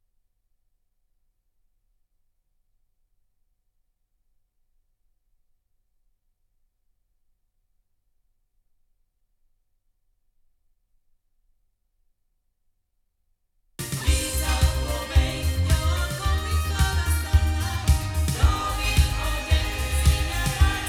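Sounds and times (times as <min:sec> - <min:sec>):
loudspeakers: 0:13.8 - 0:20.8.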